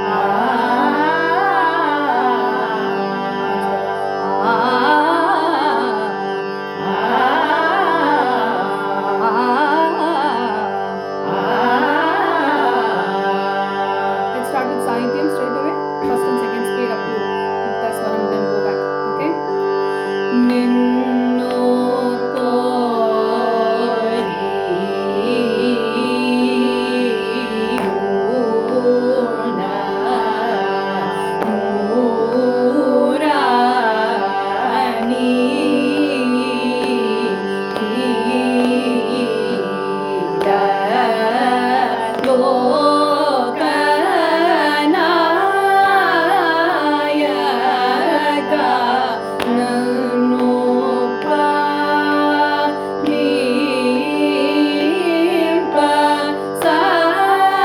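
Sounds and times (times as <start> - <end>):
Carnatic music by adults: 0.0 - 57.6.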